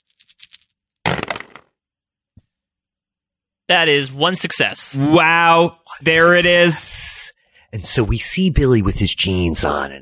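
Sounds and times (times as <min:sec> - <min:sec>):
dice being rolled: 0:00.0 - 0:01.7
speech: 0:03.7 - 0:07.1, 0:07.7 - 0:10.0.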